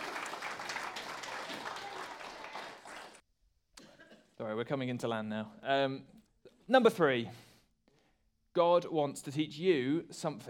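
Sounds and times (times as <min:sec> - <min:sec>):
audience applause: 0:00.0 - 0:03.2
speech: 0:04.6 - 0:07.5, 0:08.6 - 0:10.4.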